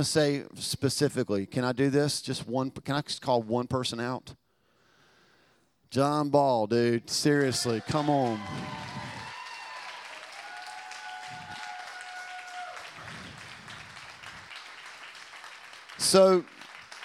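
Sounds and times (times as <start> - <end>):
speech: 0.0 - 4.4, 5.9 - 8.9, 16.0 - 16.6
audience clapping: 7.6 - 17.0.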